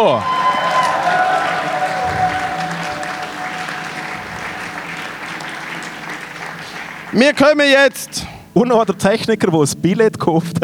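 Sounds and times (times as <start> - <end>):
speech: 0.0 - 0.4, 7.1 - 10.6
audience cheers and whistles: 0.0 - 7.3
live audience applauding: 0.0 - 8.1.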